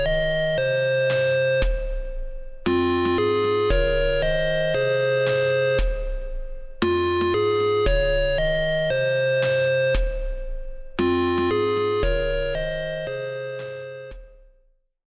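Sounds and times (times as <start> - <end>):
alarm beat: 0.0 - 14.4.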